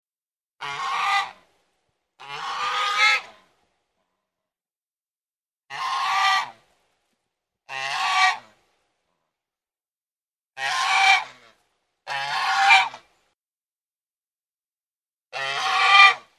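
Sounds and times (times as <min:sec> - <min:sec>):
domestic goose giving rasping honks: 0:00.6 - 0:01.4, 0:02.2 - 0:03.4, 0:05.7 - 0:06.6, 0:07.7 - 0:08.5, 0:10.6 - 0:13.0, 0:15.3 - 0:16.3.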